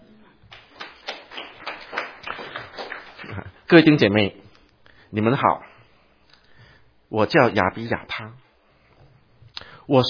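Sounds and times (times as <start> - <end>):
audience applause: 0.5 - 3.5
speech: 3.7 - 4.4, 5.1 - 5.7, 7.1 - 8.4, 9.9 - 10.0.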